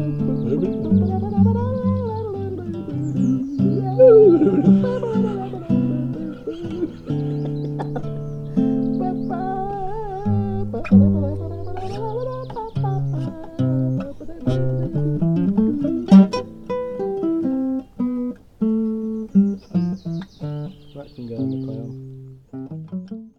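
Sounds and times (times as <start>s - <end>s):
hippie song: 0.0s - 23.2s
laughter: 3.9s - 8.2s.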